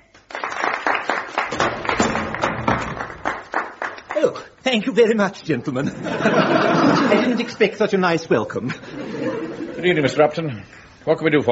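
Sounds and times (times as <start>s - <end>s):
group of men applauding: 0.0s - 4.6s
speech: 4.2s - 11.5s
laughter: 5.8s - 7.9s, 8.6s - 10.4s.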